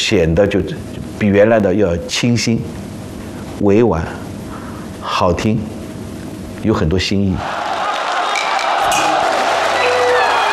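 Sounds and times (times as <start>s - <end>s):
speech: 0.1s - 2.9s, 3.6s - 4.2s, 5.0s - 5.8s, 6.6s - 7.7s
audience cheering at opera: 7.4s - 10.5s.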